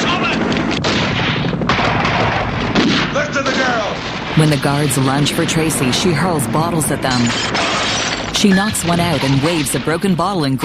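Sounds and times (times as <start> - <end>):
helicopter gunfire in an action film scene: 0.0 - 10.6
speech: 4.4 - 7.7, 8.4 - 10.6.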